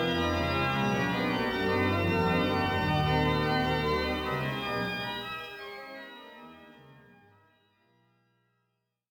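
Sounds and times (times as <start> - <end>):
French organ music fugue in B: 0.0 - 7.2.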